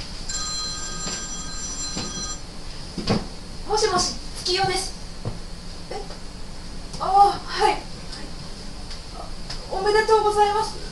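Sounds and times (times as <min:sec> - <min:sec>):
telephone ringing in a Japanese home: 0:00.3 - 0:02.4
speech: 0:03.0 - 0:05.0, 0:07.0 - 0:07.9, 0:09.8 - 0:10.8.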